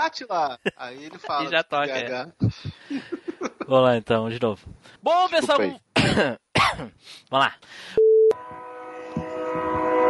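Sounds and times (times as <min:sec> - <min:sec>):
speech: 0:00.1 - 0:08.0
train sound effect: 0:08.4 - 0:10.0.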